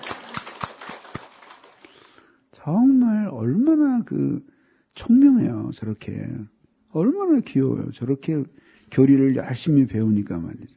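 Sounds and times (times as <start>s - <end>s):
audience applause: 0.0s - 2.2s
speech: 2.6s - 10.7s.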